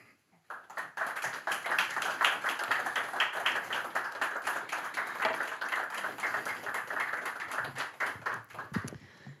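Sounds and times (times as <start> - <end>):
audience applause: 0.5 - 8.9.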